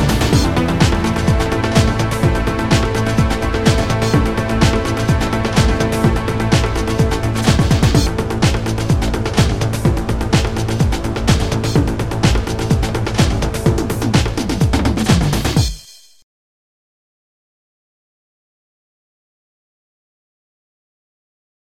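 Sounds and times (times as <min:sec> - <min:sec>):
transitional ambient soundscape: 0:00.0 - 0:15.6.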